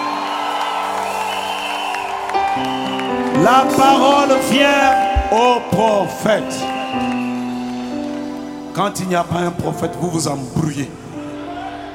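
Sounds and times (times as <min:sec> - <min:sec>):
audience shouting for joy: 0:00.0 - 0:09.0
speech: 0:02.6 - 0:07.2, 0:08.8 - 0:11.1.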